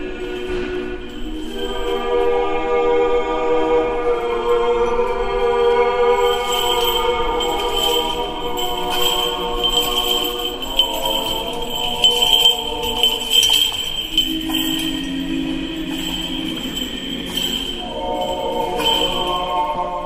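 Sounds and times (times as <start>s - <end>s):
choral singing: 0.0s - 20.0s
chains of a swinging censer jingling: 6.2s - 20.0s.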